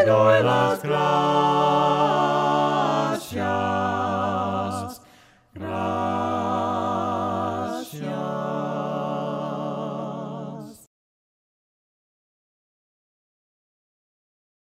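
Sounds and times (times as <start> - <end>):
voices singing hymns a cappella: 0.0 - 10.9.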